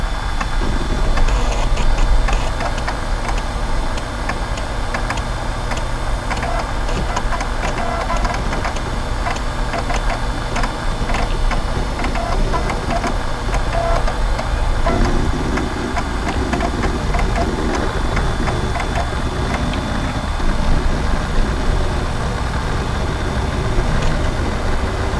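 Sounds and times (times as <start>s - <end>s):
old computer equipment whirring: 0.0s - 25.1s
rapid ticking and clicking: 0.4s - 25.1s.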